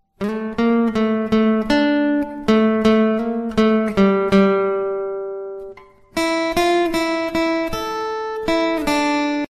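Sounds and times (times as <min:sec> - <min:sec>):
instrumental guitar cover ringtone: 0:00.2 - 0:09.5.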